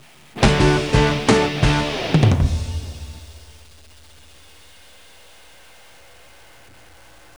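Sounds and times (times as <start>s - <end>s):
bonus game win jingle: 0.4s - 3.2s.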